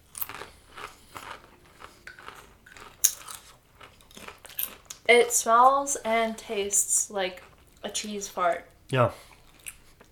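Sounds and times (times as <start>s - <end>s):
crunching potato chips: 0.0s - 5.1s
speech: 5.1s - 9.3s.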